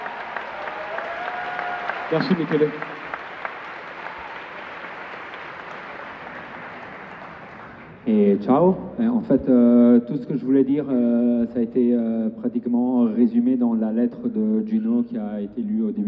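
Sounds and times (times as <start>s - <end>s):
audience applause: 0.0s - 8.0s
speech: 2.1s - 2.9s, 8.1s - 16.0s.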